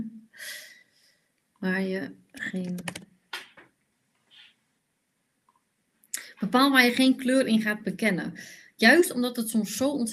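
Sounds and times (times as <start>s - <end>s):
speech: 1.6s - 3.0s, 6.4s - 10.1s
typing on a computer keyboard: 2.6s - 3.0s.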